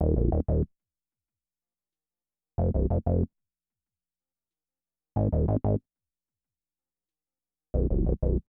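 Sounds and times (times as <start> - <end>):
bass: 0.0 - 0.7, 2.6 - 3.3, 5.2 - 5.8, 7.8 - 8.4.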